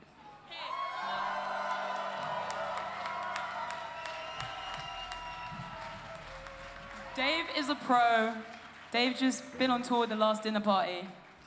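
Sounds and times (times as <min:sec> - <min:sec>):
audience cheering, screaming and applauding: 0:00.5 - 0:08.2
speech: 0:07.2 - 0:11.2.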